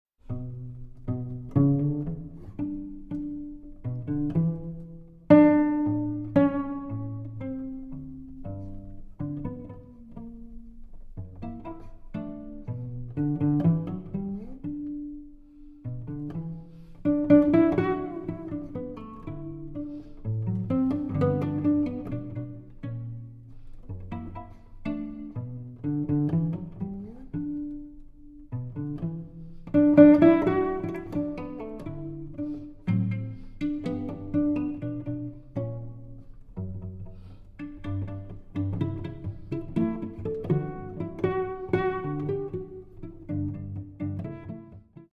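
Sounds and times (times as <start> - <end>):
solo cello arrangement: 0.0 - 45.1.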